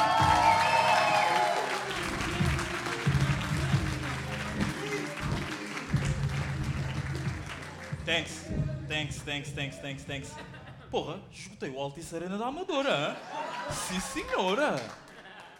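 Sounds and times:
audience applause: 0:00.0 - 0:08.3, 0:13.6 - 0:15.5
speech: 0:08.1 - 0:15.0
laughter: 0:10.1 - 0:11.1, 0:12.9 - 0:15.5.

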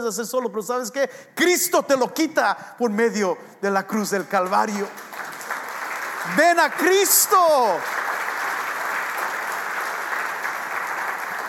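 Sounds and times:
speech: 0:00.0 - 0:05.2, 0:06.3 - 0:08.0
audience applauding: 0:04.2 - 0:11.4.

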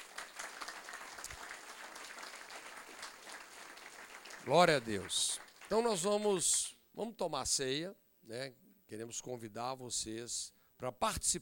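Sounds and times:
audience applauding: 0:00.0 - 0:06.4
speech: 0:04.4 - 0:11.4.

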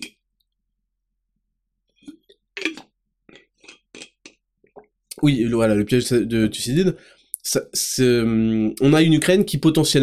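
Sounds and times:
person taking a sip of Play Endurance: 0:02.0 - 0:04.9
speech: 0:05.2 - 0:10.0.

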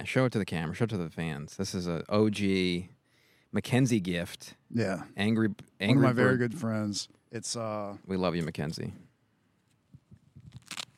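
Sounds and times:
speech: 0:00.0 - 0:09.1
Angry Bird Star Wars wallet being pulled out: 0:10.3 - 0:10.9.

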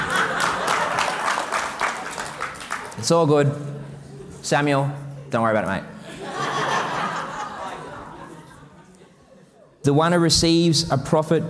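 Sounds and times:
laughter: 0:00.0 - 0:02.2, 0:06.0 - 0:09.8
audience applause: 0:00.0 - 0:03.0
speech: 0:03.0 - 0:03.8, 0:04.4 - 0:05.9, 0:09.8 - 0:11.4.

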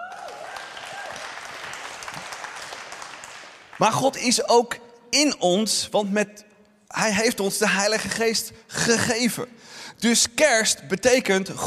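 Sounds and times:
audience applause: 0:00.0 - 0:04.0
speech: 0:03.8 - 0:11.6.

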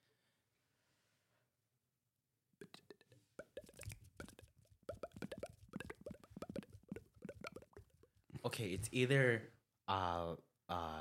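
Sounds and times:
voice imitating boiling water bubbles: 0:02.6 - 0:08.0
speech: 0:08.4 - 0:10.9.

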